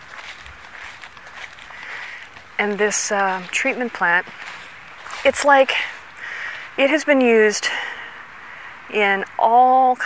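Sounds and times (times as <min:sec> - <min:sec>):
footsteps climbing a hill beside an old treatment plant: 0:00.0 - 0:06.2
noisy hiss: 0:01.6 - 0:10.0
speech: 0:02.6 - 0:04.5, 0:05.2 - 0:06.0, 0:06.8 - 0:07.9, 0:08.9 - 0:10.0.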